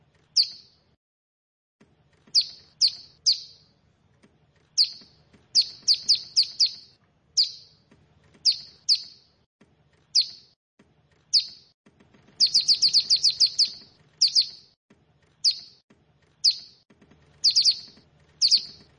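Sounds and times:
bar-winged prinia giving high sharp down-slurred chirps: 0.3s - 0.8s, 2.3s - 3.7s, 4.6s - 7.8s, 8.4s - 9.4s, 10.1s - 10.6s, 11.3s - 11.7s, 12.4s - 14.8s, 15.4s - 15.8s, 16.4s - 16.8s, 17.4s - 18.9s.

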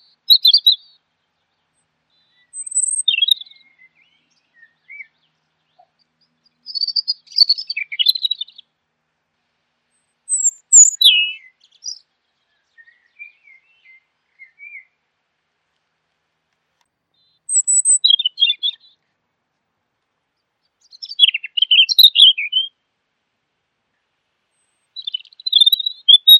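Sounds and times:
bird song with twittering and chirps: 0.0s - 1.0s, 2.2s - 8.6s, 10.3s - 14.8s, 17.5s - 19.0s, 20.8s - 22.7s, 24.6s - 26.3s.

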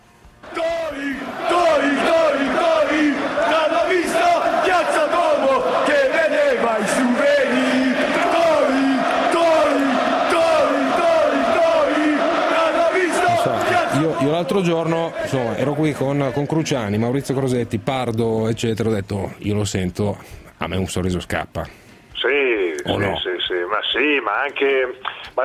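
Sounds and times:
football fans chanting an insult at a player: 0.4s - 16.6s
speech: 14.5s - 21.8s, 22.8s - 25.4s.

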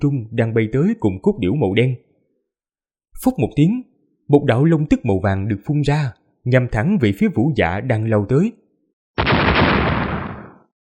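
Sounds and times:
speech: 0.0s - 2.0s, 3.2s - 8.6s
several near-simultaneous explosions: 9.2s - 10.7s.

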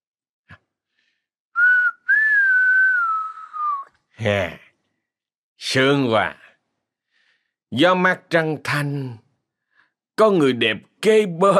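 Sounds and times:
person whistling a tune: 1.6s - 4.0s
speech: 4.2s - 4.6s, 5.6s - 6.4s, 7.7s - 9.2s, 10.2s - 11.5s.

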